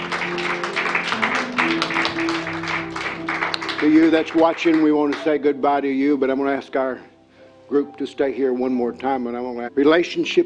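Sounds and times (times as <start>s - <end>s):
audience hand clapping: 0.0s - 5.4s
speech: 3.8s - 7.1s, 7.7s - 10.4s.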